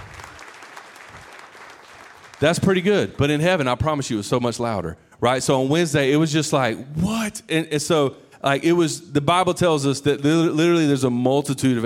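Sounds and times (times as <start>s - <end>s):
audience clapping: 0.0s - 3.4s
speech: 2.4s - 11.8s.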